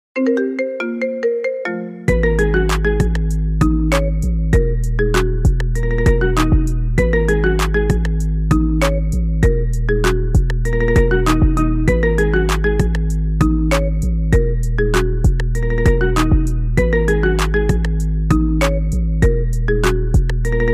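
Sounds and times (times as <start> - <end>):
marimba remix ringtone: 0.2 - 20.7.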